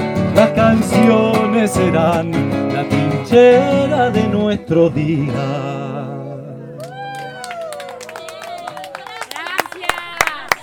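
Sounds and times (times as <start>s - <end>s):
speech: 0.6s - 6.1s
audience applause and cheering: 6.8s - 10.6s.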